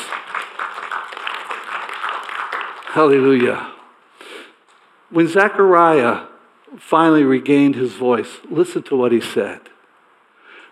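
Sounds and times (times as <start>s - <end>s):
audience applause: 0.0s - 3.8s
speech: 2.9s - 3.8s, 5.1s - 9.7s.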